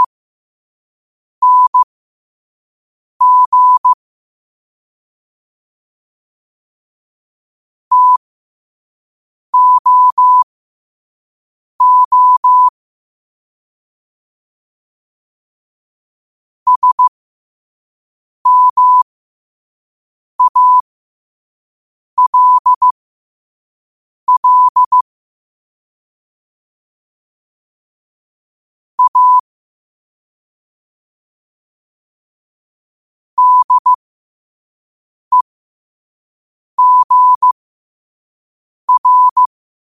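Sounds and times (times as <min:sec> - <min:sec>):
morse code at 5 wpm: 0:01.4 - 0:01.8, 0:03.2 - 0:04.0, 0:07.9 - 0:08.2, 0:09.6 - 0:10.4, 0:11.8 - 0:12.7, 0:16.7 - 0:17.1, 0:18.5 - 0:19.0, 0:20.4 - 0:20.8, 0:22.2 - 0:23.0, 0:24.3 - 0:25.0, 0:29.0 - 0:29.5, 0:33.4 - 0:34.0, 0:36.8 - 0:37.6, 0:38.9 - 0:39.5.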